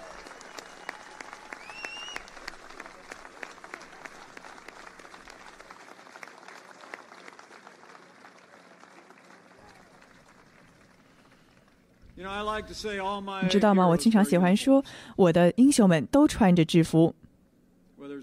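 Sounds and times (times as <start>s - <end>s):
crowd clapping: 0.0s - 14.3s
whistles: 0.2s - 2.4s
speech: 12.2s - 17.2s.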